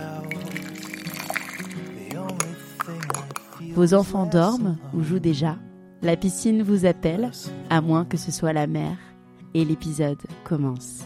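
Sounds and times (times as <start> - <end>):
coffee pouring from a coffee maker: 0.0 - 3.6
speech: 3.8 - 11.0.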